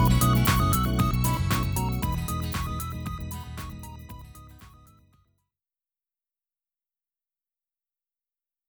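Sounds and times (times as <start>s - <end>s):
instrumental music: 0.0s - 5.1s.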